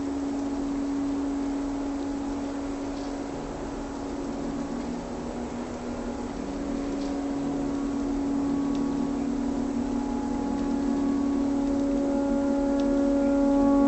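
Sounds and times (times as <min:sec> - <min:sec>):
noise: 0:00.0 - 0:13.8
tornado siren: 0:00.0 - 0:13.8
clarinet notes: 0:08.3 - 0:13.8.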